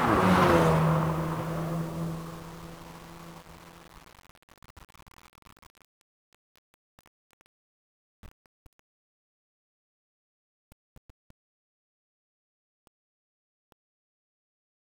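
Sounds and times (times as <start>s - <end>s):
golf cart passing by: 0.0s - 3.8s.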